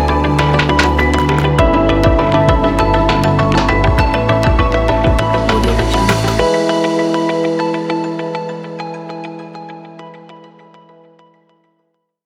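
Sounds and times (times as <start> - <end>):
technology corporate ident music: 0.0 - 9.4.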